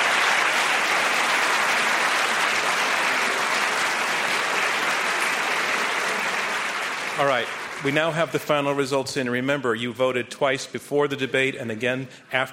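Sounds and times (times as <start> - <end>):
audience round of applause: 0.0 - 8.8
speech: 7.2 - 12.5.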